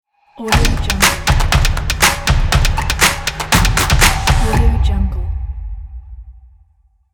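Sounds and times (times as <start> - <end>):
basketball stomp logo jingle: 0.6 - 4.6.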